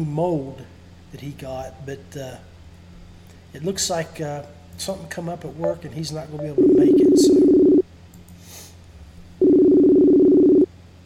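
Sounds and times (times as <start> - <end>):
speech: 0.0 - 2.5, 3.5 - 7.6
telephone buzzing tone as a call is placed: 6.4 - 7.8, 9.4 - 10.7.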